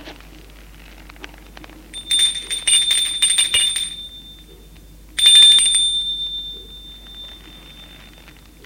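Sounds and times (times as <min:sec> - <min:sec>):
electric doorbell ringing: 0:01.9 - 0:08.6.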